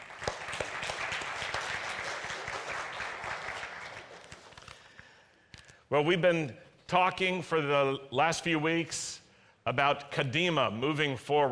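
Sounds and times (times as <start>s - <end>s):
audience applauding award-winning artisanal coffee roasters: 0.0s - 4.7s
speech: 5.9s - 11.4s.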